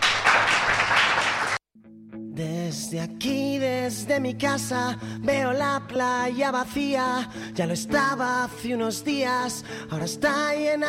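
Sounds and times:
audience applause: 0.0s - 1.6s
speech: 2.4s - 10.8s.

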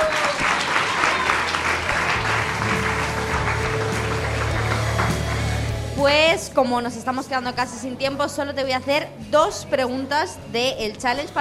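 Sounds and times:
audience applause: 0.0s - 5.9s
speech: 6.0s - 11.4s.

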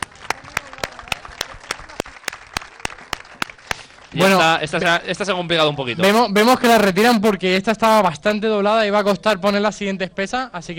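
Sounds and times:
audience applause: 0.0s - 4.8s
speech: 4.1s - 10.7s.

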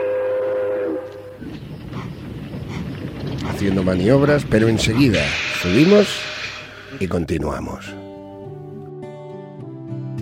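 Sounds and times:
multi-toned whistle of old steam train: 0.0s - 1.4s
speech: 3.6s - 6.3s, 7.0s - 8.0s
rough hiss of venting steam from old steam train: 4.3s - 7.4s.

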